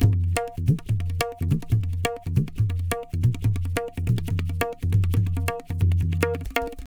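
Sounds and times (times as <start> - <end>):
tabla: 0.0 - 6.9.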